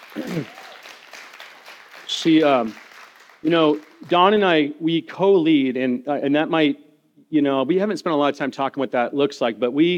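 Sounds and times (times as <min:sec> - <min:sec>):
round of applause: 0:00.0 - 0:04.4
speech: 0:00.3 - 0:00.6, 0:02.2 - 0:02.8, 0:03.4 - 0:09.9.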